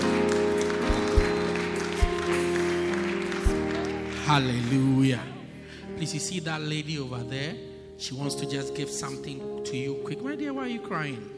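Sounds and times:
audience clapping: 0.0 - 5.9
speech: 4.3 - 5.4, 6.0 - 11.3.

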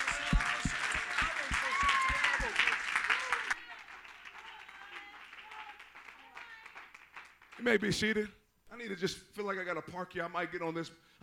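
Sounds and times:
crowd clapping hands in praise: 0.0 - 8.0
speech: 7.6 - 11.2.

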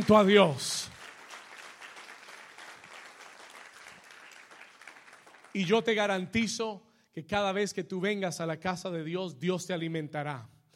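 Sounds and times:
speech: 0.0 - 0.9, 5.5 - 10.5
audience applause: 0.0 - 5.7.

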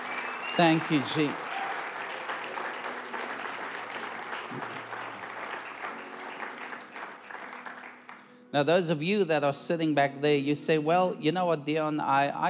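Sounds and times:
audience clapping: 0.0 - 8.3
speech: 0.6 - 1.4, 8.5 - 12.4.

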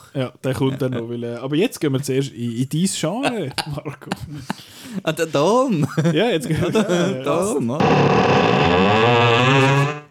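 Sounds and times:
speech: 0.1 - 10.0
laughter: 3.2 - 7.6
creaking door: 7.8 - 10.0.

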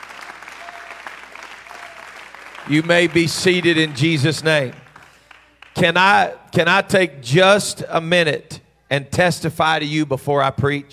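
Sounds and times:
audience clapping hands: 0.0 - 6.1
speech: 2.7 - 4.8, 5.8 - 10.9.

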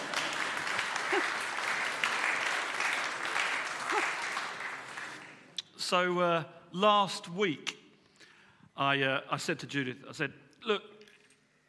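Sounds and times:
crowd applause: 0.0 - 5.5
speech: 5.9 - 7.8, 8.8 - 10.9.

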